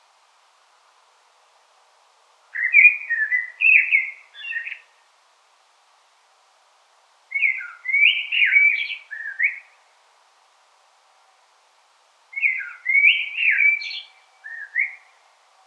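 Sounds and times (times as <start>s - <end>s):
common blackbird singing whistled phrases: 2.6s - 4.8s, 7.4s - 9.7s, 12.4s - 15.1s.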